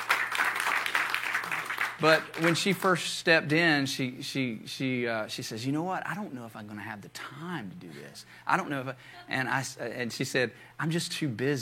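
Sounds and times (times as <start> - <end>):
audience hand clapping: 0.0 - 3.0
speech: 2.0 - 11.5.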